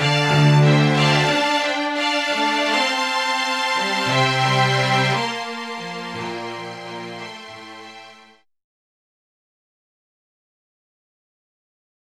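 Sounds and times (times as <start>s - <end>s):
D string note: 0.0s - 8.4s.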